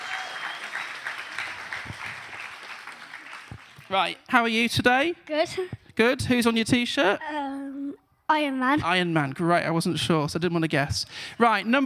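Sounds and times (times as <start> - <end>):
group applauding: 0.0 - 4.3
speech: 3.9 - 7.6, 8.3 - 11.8.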